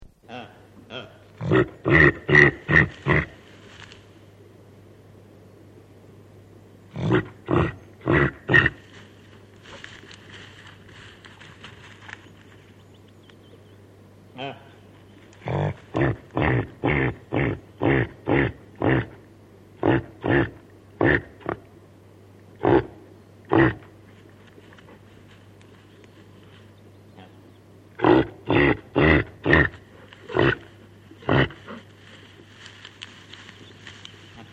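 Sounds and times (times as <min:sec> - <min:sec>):
reindeer grunting: 0:00.2 - 0:03.5, 0:06.9 - 0:11.2, 0:14.3 - 0:21.7, 0:22.5 - 0:24.1, 0:27.1 - 0:32.8, 0:33.6 - 0:34.5
faint rustling: 0:02.9 - 0:04.3, 0:08.8 - 0:13.1, 0:24.0 - 0:27.0, 0:29.7 - 0:34.5.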